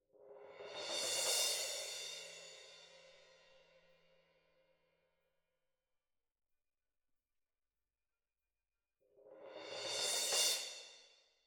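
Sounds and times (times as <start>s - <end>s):
percussion: 0.1s - 4.5s, 9.0s - 11.4s.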